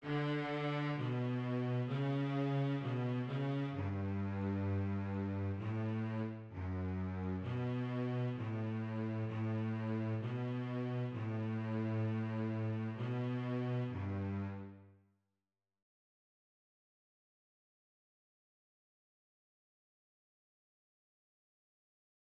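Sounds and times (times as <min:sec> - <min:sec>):
bass: 0:00.0 - 0:14.9.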